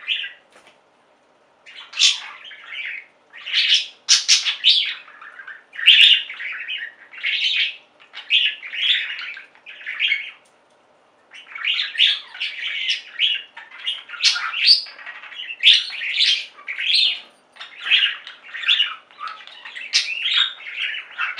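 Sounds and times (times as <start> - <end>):
Budgerigar chatter: 1.7 - 10.4, 11.3 - 21.3.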